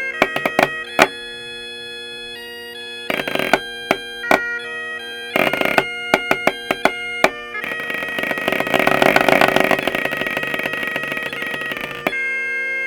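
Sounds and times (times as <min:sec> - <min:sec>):
snare drum drone: 0:00.0 - 0:01.3, 0:03.1 - 0:04.5, 0:05.4 - 0:12.2.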